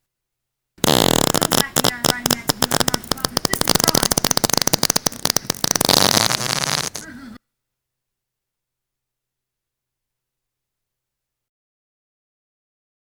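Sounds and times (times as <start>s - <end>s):
fart: 0.8s - 7.4s.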